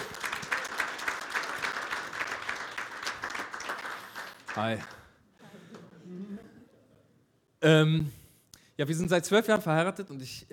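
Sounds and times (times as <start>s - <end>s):
audience applause: 0.0s - 5.1s
speech: 4.6s - 5.0s, 7.6s - 8.2s, 8.8s - 10.5s.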